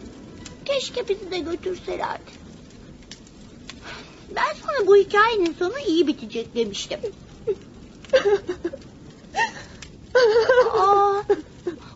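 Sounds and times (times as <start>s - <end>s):
speech: 0.8s - 2.4s, 4.0s - 8.9s, 10.2s - 11.5s
mother crying: 7.4s - 8.8s, 9.4s - 11.9s.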